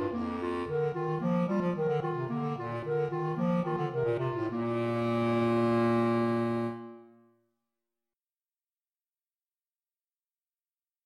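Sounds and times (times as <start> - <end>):
gavotte in C major on clarinet: 0.0 - 7.3.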